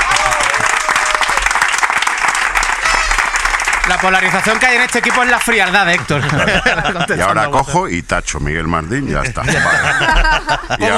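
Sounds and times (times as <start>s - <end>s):
loud applause: 0.0s - 6.9s
speech: 3.9s - 10.9s
laughter: 6.0s - 7.5s, 9.2s - 10.9s.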